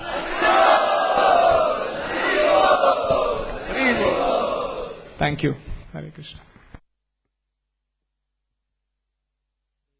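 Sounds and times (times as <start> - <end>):
crowd loudly chanting to welcome a guest speaker: 0.0 - 5.2
speech: 5.3 - 6.5.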